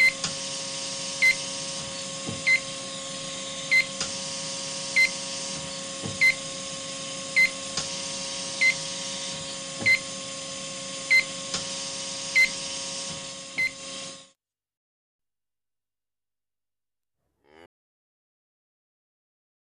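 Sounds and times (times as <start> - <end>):
hospital device: 0.0 - 6.6, 7.3 - 10.2.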